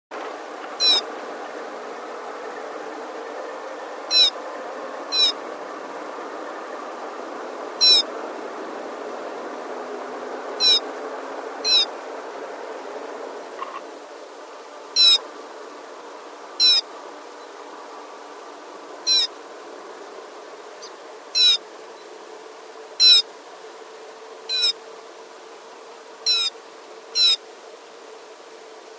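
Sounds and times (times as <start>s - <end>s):
steady low hiss: 0.1s - 28.9s
Rufous-necked snowfinch squeaky high notes: 0.8s - 1.0s, 4.1s - 4.4s, 5.1s - 5.4s, 7.8s - 8.0s, 10.6s - 10.8s, 11.6s - 11.9s, 15.0s - 15.2s, 16.6s - 16.8s, 19.1s - 19.3s, 21.4s - 21.6s.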